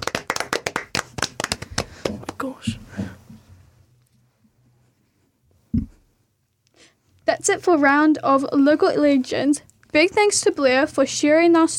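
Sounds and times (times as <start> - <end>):
round of applause: 0.0 - 2.5
speech: 2.1 - 2.9, 7.4 - 11.7.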